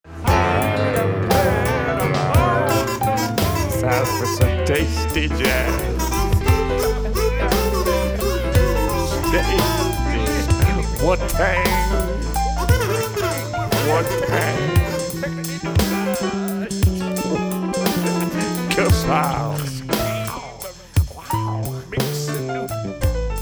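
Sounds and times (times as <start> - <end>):
jazz music: 0.1 - 23.4.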